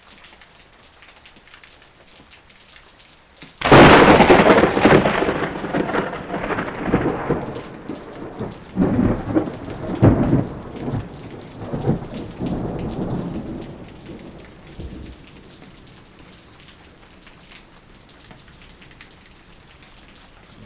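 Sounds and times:
rain: 0.0s - 20.6s
strong thunder: 3.6s - 15.3s.

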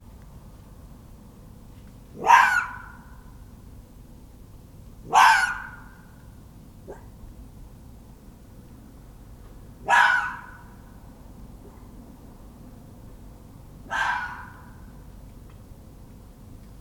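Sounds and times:
fox giving faint harsh clipped cries: 2.2s - 3.1s, 5.1s - 6.0s, 9.9s - 10.6s, 13.9s - 14.8s.

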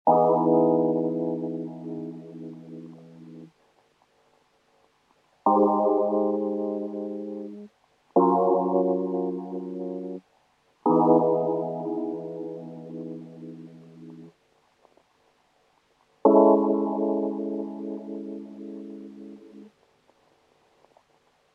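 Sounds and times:
Rhodes lofi chords neo soul trip hop: 0.1s - 3.5s, 5.4s - 10.2s, 10.8s - 14.3s, 16.2s - 19.7s.

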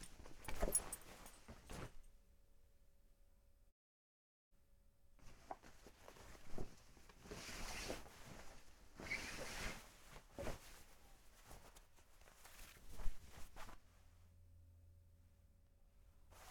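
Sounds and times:
clothing rustling: 0.0s - 2.1s, 5.2s - 14.2s.

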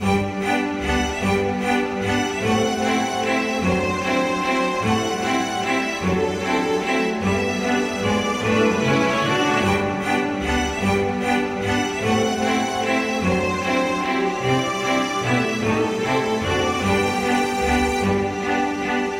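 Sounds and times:
classical waltz loop: 0.0s - 19.1s.

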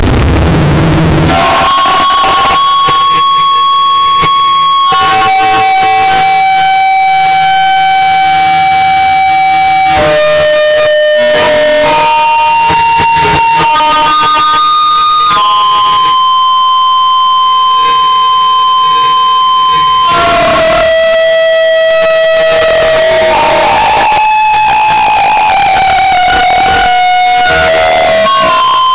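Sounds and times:
distorted clarinet: 0.0s - 28.9s.

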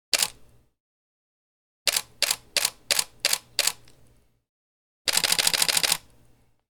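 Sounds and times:
DSLR camera shutters: 0.2s - 0.4s, 1.9s - 3.9s, 5.1s - 6.1s.

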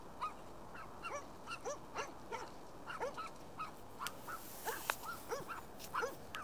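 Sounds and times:
dog barking: 0.2s - 3.3s, 4.7s - 6.4s.

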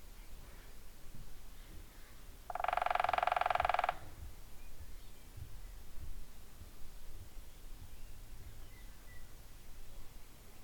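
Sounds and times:
woodpecker drumming in a fast machine-gun roll of taps: 2.5s - 4.1s.

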